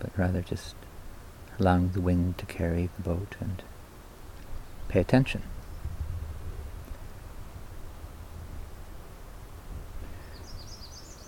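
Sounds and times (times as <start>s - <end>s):
speech: 0.0s - 0.9s, 1.6s - 3.7s, 4.9s - 5.6s
bird song: 5.5s - 6.0s, 10.1s - 11.2s.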